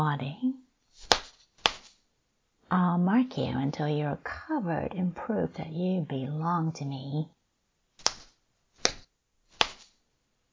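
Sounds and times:
speech: 0.0 - 0.5, 2.7 - 7.4
whip lashing skin: 1.0 - 2.0, 8.0 - 10.0.

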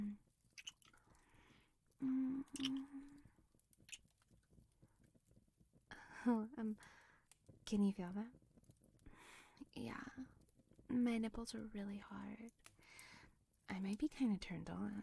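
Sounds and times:
speech: 2.0 - 3.0, 6.3 - 7.0, 7.7 - 8.4, 9.8 - 13.1, 13.7 - 15.0
hummed vocal sounds: 2.0 - 3.2
wet kissing sounds with smacks and slurping: 2.5 - 2.9.

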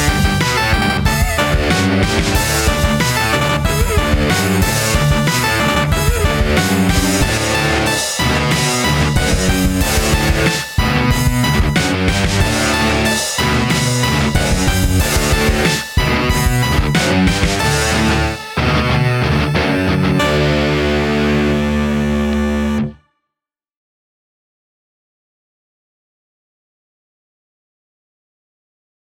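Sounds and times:
punk popcore breakdown: 0.0 - 22.9.

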